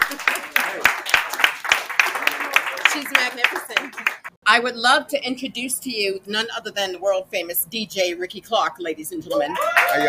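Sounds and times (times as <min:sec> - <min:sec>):
small audience clapping at a sustainable couture outerwear fashion show: 0:00.0 - 0:04.4, 0:09.5 - 0:10.0
speech: 0:03.0 - 0:10.0.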